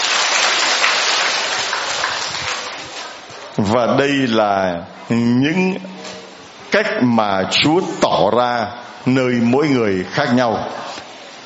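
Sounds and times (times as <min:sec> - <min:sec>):
round of applause: 0:00.0 - 0:03.3
speech: 0:03.6 - 0:06.0, 0:06.7 - 0:10.8.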